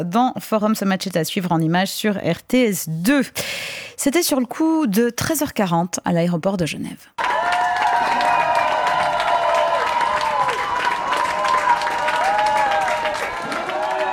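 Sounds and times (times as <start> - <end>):
speech: 0.0 - 7.3
intense applause and cheering at airport: 7.2 - 14.1.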